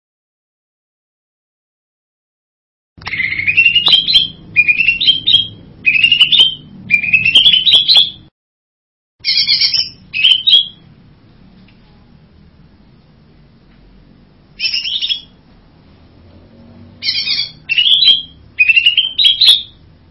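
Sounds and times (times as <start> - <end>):
bird buzzy whistled song: 3.0 - 8.3, 9.2 - 10.9, 14.5 - 15.4, 17.0 - 19.9.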